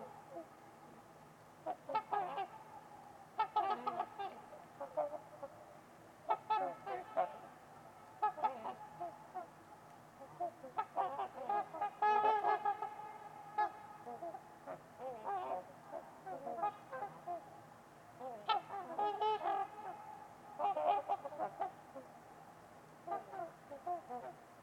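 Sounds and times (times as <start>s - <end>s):
trumpeter swans honking: 1.6s - 5.5s, 6.2s - 9.6s, 10.2s - 17.5s, 18.2s - 22.0s.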